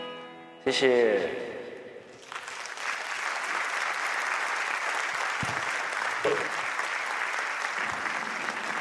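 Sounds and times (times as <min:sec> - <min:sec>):
speech: 0:00.6 - 0:01.6
audience applause: 0:02.2 - 0:08.7.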